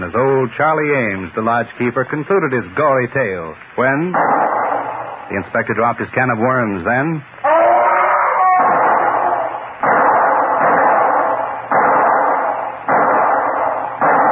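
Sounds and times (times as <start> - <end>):
speech: 0.1 - 4.6, 5.3 - 7.4
pistol shots: 4.1 - 5.4, 8.6 - 14.3.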